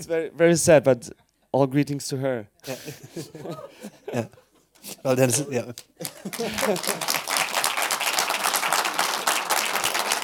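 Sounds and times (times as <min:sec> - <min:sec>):
speech: 0:00.0 - 0:07.2
laughter: 0:02.6 - 0:07.5
audience applause: 0:06.0 - 0:10.2.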